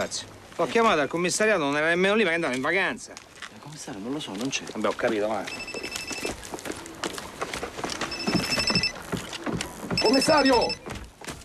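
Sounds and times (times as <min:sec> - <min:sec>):
speech: 0:00.0 - 0:05.9, 0:10.1 - 0:10.9
busy patter: 0:00.0 - 0:11.4
telephone ringing in a crime drama scene: 0:05.5 - 0:06.4, 0:07.9 - 0:10.9.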